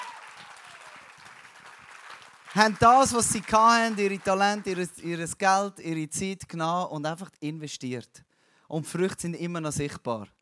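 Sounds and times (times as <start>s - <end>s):
audience clapping: 0.0s - 5.1s
speech: 2.5s - 10.4s.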